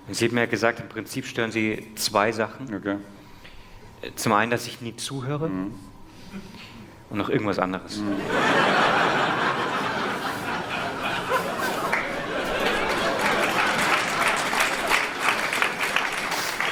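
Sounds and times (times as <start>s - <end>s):
speech: 0.1s - 3.2s, 4.0s - 9.1s
laughter: 8.1s - 15.4s
audience clapping: 9.6s - 16.7s
chatter: 9.6s - 16.7s.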